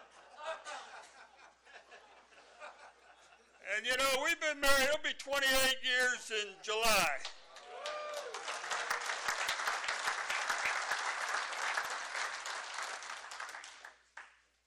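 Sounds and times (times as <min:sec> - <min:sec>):
laughter: 0:00.0 - 0:03.6
speech: 0:03.8 - 0:07.3
audience applause: 0:07.5 - 0:14.0.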